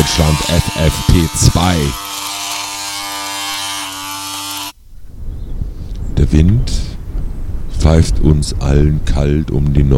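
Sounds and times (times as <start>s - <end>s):
electric razor shaving a beard: 0.0s - 4.8s
speech: 0.2s - 2.1s, 6.2s - 6.9s, 7.8s - 9.9s.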